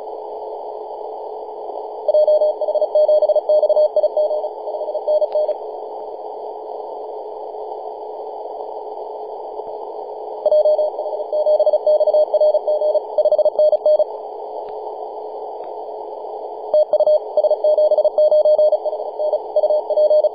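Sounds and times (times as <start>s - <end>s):
CW Morse code tones on 24.910 MHz: 2.1s - 5.6s, 10.5s - 14.1s, 16.8s - 20.3s.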